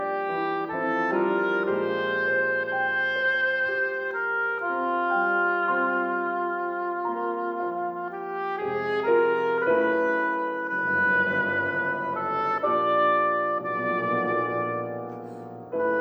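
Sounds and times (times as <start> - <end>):
oboe playing: 0.0 - 15.9.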